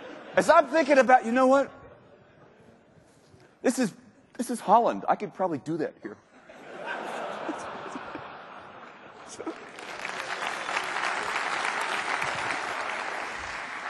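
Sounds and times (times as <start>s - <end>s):
laughter: 0.0s - 1.0s, 6.2s - 10.6s
speech: 0.4s - 1.8s, 3.6s - 6.3s, 9.3s - 9.7s
audience applause: 8.8s - 13.8s.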